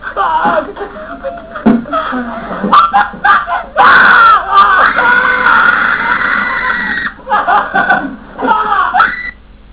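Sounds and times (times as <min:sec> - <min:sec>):
person laughing: 0:00.0 - 0:05.6, 0:06.4 - 0:09.2.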